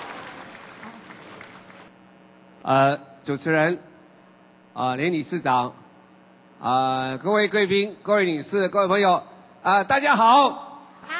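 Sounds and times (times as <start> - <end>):
audience applause: 0.0 - 1.9
speech: 2.6 - 3.9, 4.8 - 5.8, 6.6 - 11.1.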